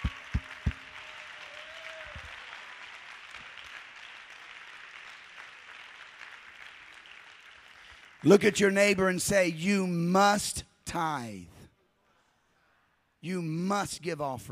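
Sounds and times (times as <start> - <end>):
sharp claps and thumps: 0.0 - 1.1
crowd applauding: 0.0 - 8.6
speech: 8.2 - 11.5, 13.2 - 14.4.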